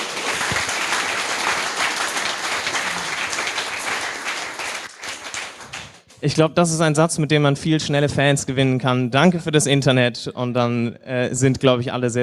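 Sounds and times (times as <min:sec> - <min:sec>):
audience applause: 0:00.0 - 0:06.2
speech: 0:06.2 - 0:12.2.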